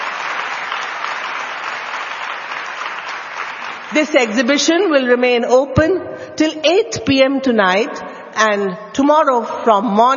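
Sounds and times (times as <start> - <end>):
audience applause: 0.0 - 4.0
speech: 3.9 - 10.1.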